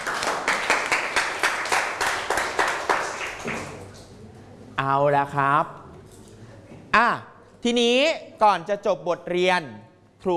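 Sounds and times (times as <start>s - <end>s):
students clapping: 0.0s - 4.0s
speech: 4.9s - 5.8s, 7.0s - 10.3s.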